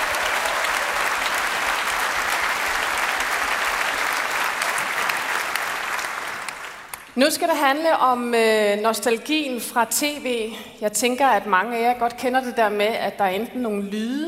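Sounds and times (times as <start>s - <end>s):
audience applause: 0.0s - 7.1s
speech: 7.2s - 14.2s.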